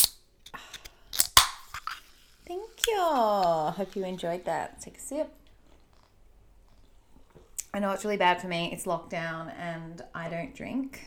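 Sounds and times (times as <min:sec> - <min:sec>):
soda can being opened: 0:00.0 - 0:04.1
speech: 0:02.5 - 0:05.4, 0:07.7 - 0:11.0.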